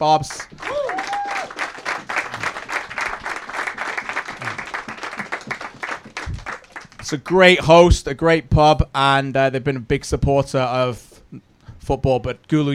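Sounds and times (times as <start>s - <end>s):
speech: 0.0s - 0.6s, 7.1s - 12.7s
crowd applause: 0.3s - 7.1s.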